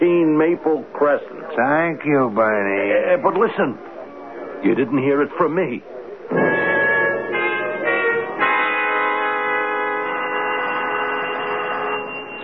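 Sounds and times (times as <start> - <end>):
speech: 0.4 - 3.9, 4.6 - 6.6
doorbell ringing: 6.3 - 12.4.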